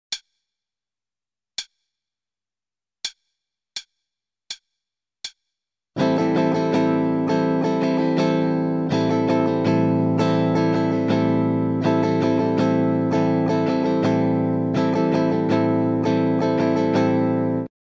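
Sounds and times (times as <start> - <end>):
starter guitar rhythm: 6.0 - 17.7.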